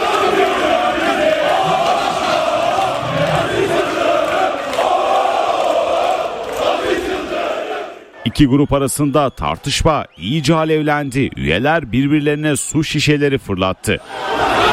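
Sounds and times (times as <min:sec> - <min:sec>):
members chanting at a Fenerbahçe extraordinary congress: 0:00.0 - 0:08.3, 0:13.9 - 0:14.7
speech: 0:08.2 - 0:14.7.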